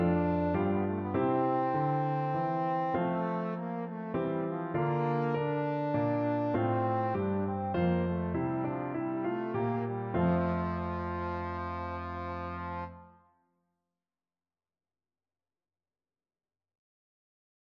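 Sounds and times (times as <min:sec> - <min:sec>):
trombone: 0:00.0 - 0:13.2.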